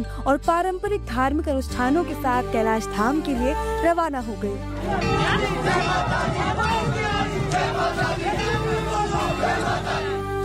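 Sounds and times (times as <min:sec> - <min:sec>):
speech: 0:00.0 - 0:06.7
devotees' crowd chanting religious slogans: 0:04.8 - 0:10.2.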